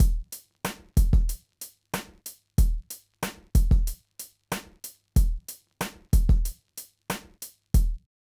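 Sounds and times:
drums: 0.0 - 8.1.

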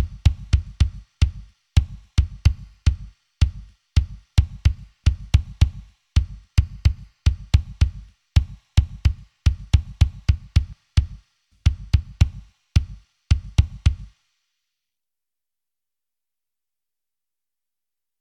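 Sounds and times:
drums: 0.0 - 14.3.

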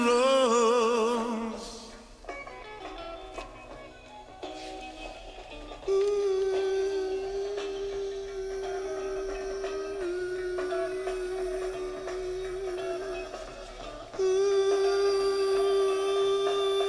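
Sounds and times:
person singing: 0.0 - 2.2, 5.7 - 16.8.

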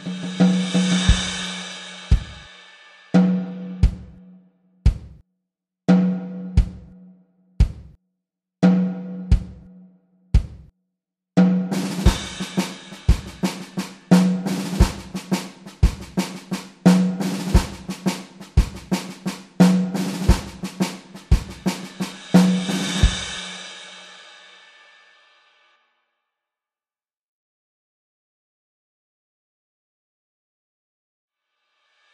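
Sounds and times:
drums: 0.0 - 4.2, 4.9 - 5.2, 5.9 - 7.0, 7.6 - 8.0, 8.6 - 9.7, 10.4 - 10.7, 11.4 - 24.9.

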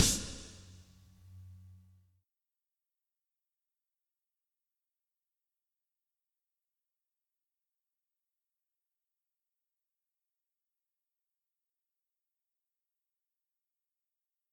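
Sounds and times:
drums: 0.0 - 0.9.

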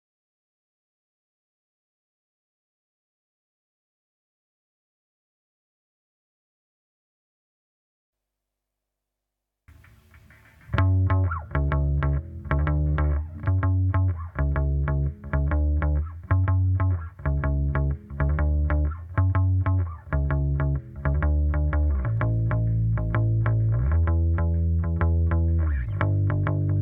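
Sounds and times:
rhythm: 9.7 - 26.8.

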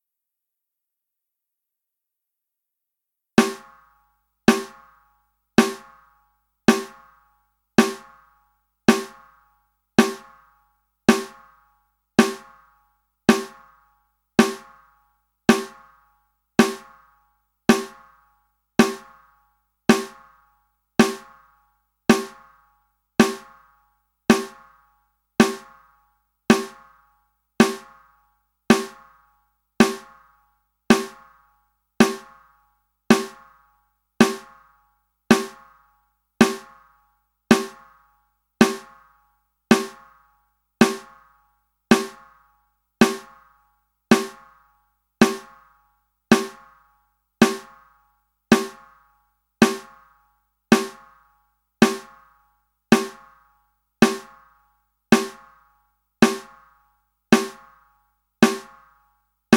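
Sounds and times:
drums: 3.4 - 3.9, 4.5 - 5.0, 5.6 - 6.0, 6.7 - 7.2, 7.8 - 8.3, 8.9 - 9.4, 10.0 - 10.4, 11.1 - 11.5, 12.2 - 12.6, 13.3 - 13.7, 14.4 - 14.8, 15.5 - 16.0, 16.6 - 17.0, 17.7 - 18.2, 18.8 - 19.2, 19.9 - 20.4, 21.0 - 21.5, 22.1 - 22.6, 23.2 - 23.7, 24.3 - 24.8, 25.4 - 25.9, 26.5 - 27.0, 27.6 - 29.2, 29.8 - 31.4, 32.0 - 32.5, 33.1 - 33.6, 34.2 - 34.7, 35.3 - 35.8, 36.4 - 36.9, 37.5 - 38.0, 38.6 - 39.1, 39.7 - 40.2, 40.8 - 41.3, 41.9 - 42.4, 43.0 - 43.5, 44.1 - 44.6, 45.2 - 45.7, 46.3 - 46.8, 47.4 - 47.8, 48.5 - 49.0, 49.6 - 50.1, 50.7 - 51.2, 51.8 - 52.3, 52.9 - 53.4, 54.0 - 54.5, 55.1 - 55.6, 56.2 - 56.7, 57.3 - 57.8, 58.4 - 58.8.

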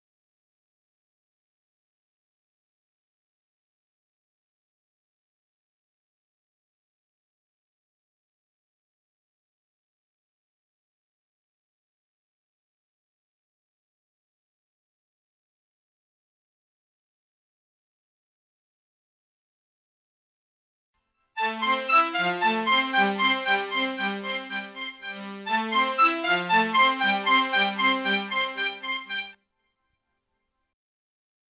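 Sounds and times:
multitrack keyboard instrument playing: 21.4 - 29.3.

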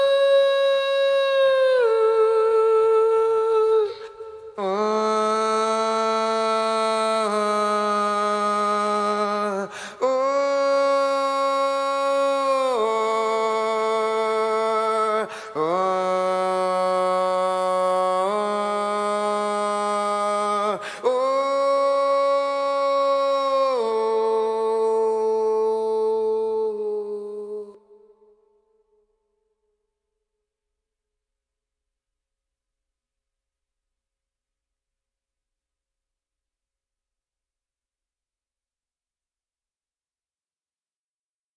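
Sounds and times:
person singing: 0.0 - 28.3.

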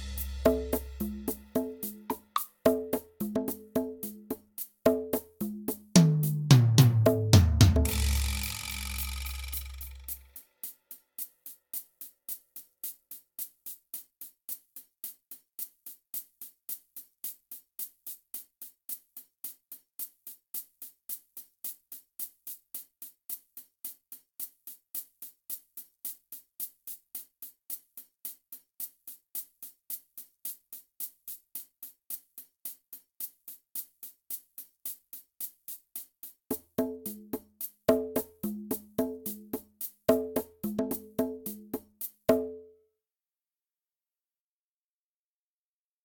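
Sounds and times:
drums: 0.0 - 10.8, 36.5 - 42.6.

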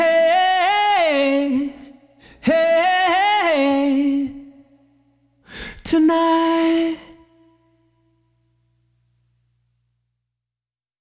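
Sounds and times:
a cappella singing: 0.0 - 4.9, 5.6 - 7.6.

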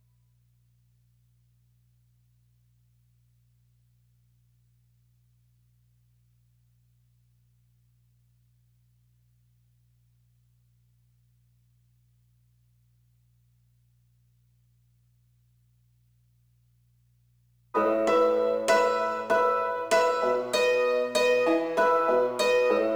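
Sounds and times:
piano: 17.8 - 22.9.

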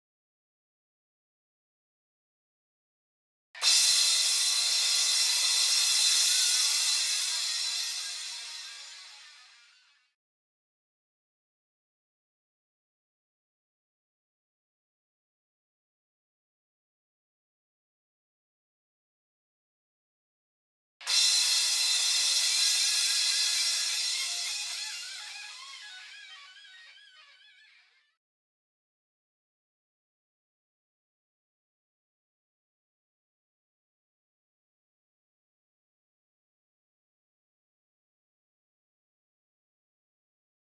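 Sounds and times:
drums: 3.6 - 9.8, 21.0 - 27.2.

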